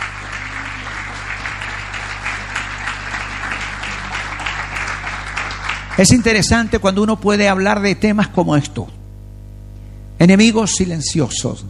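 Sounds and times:
audience applause: 0.0s - 6.8s
low steady hum: 0.0s - 11.6s
speech: 6.0s - 9.0s, 10.2s - 11.6s.

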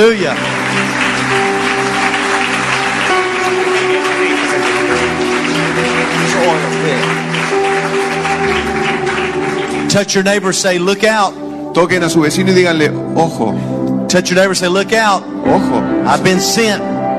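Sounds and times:
speech: 0.0s - 1.5s, 10.0s - 16.9s
audience applause: 0.0s - 11.1s
sustained musical tone: 0.0s - 17.1s.

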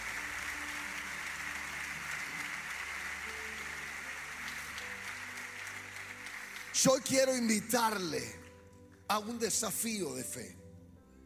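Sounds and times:
audience applause: 0.0s - 8.3s
speech: 6.8s - 8.4s, 9.1s - 10.6s.

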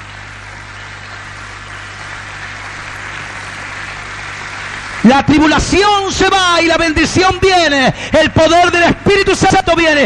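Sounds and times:
audience applauding: 0.0s - 7.6s
speech: 5.0s - 10.0s.

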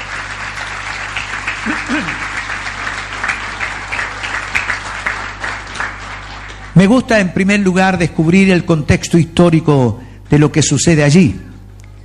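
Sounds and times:
audience applause: 0.0s - 6.9s
speech: 1.6s - 2.3s, 6.8s - 11.5s.

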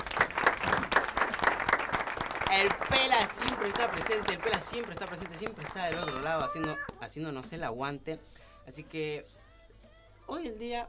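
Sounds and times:
crowd applauding: 0.0s - 7.0s
speech: 2.6s - 9.4s, 10.3s - 10.8s.

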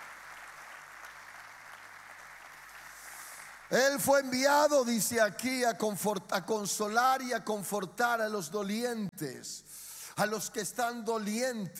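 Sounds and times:
crowd applauding: 0.0s - 4.0s
speech: 3.7s - 11.7s.

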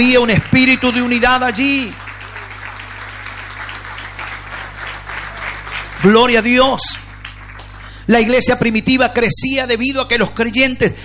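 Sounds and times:
speech: 0.0s - 2.0s, 6.0s - 7.0s, 8.1s - 11.0s
church audience applauding: 0.0s - 8.2s.

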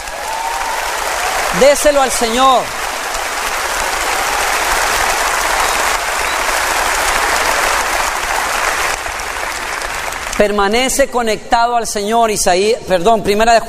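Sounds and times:
audience applause: 0.0s - 10.6s
speech: 1.5s - 2.8s, 10.4s - 13.6s.

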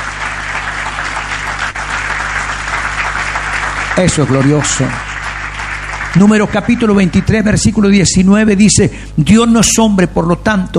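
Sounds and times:
audience applause: 0.0s - 7.9s
speech: 4.0s - 5.1s, 6.1s - 10.7s.

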